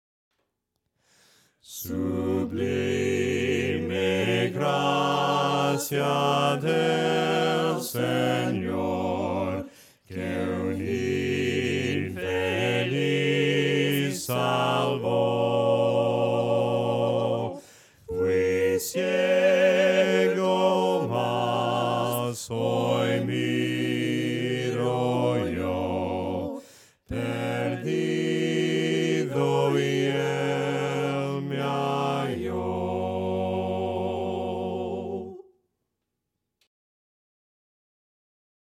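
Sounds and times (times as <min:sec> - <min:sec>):
voices singing hymns a cappella: 0:01.2 - 0:35.6.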